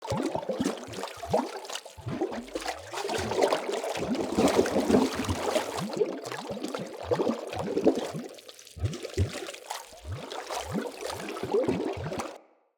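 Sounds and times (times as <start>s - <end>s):
water hazard gurgling: 0.0s - 12.4s.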